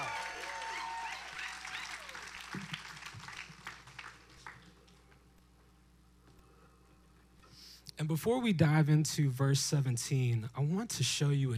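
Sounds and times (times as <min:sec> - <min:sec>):
audience clapping: 0:00.0 - 0:05.2
speech: 0:08.0 - 0:11.5.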